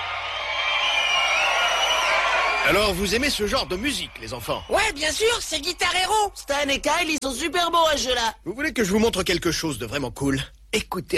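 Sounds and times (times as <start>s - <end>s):
video game crowd cheering: 0.0s - 7.2s
speech: 2.6s - 11.1s.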